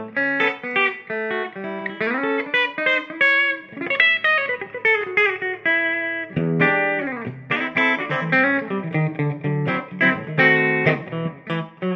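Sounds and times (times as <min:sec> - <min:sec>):
Telecaster electric guitar: 0:00.0 - 0:11.9.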